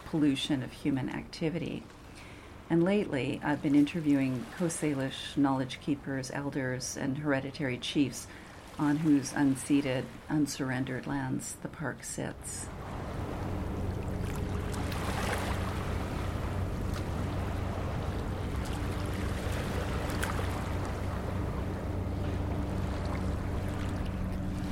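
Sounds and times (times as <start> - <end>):
soft wind: 0.0 - 24.7
speech: 0.1 - 2.0, 2.7 - 12.9
freighter engine drone slowly passing: 12.6 - 24.7
water wash: 12.6 - 24.7.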